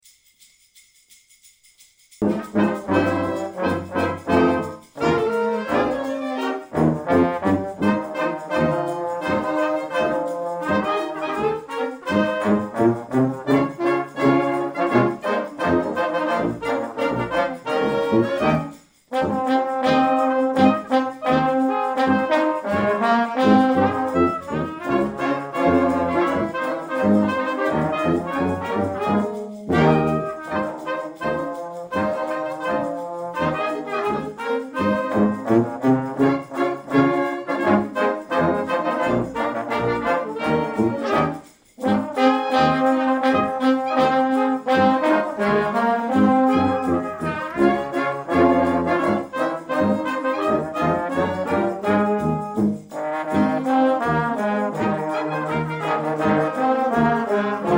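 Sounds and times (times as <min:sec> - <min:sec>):
Christmas song: 0:00.0 - 0:57.7.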